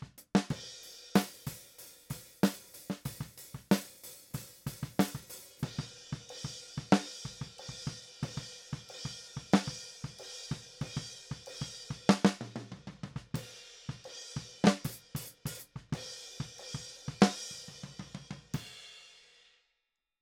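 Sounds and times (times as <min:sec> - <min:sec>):
snare drum: 0:00.0 - 0:05.9, 0:06.8 - 0:08.4, 0:09.4 - 0:09.8, 0:12.1 - 0:14.0, 0:14.6 - 0:18.6.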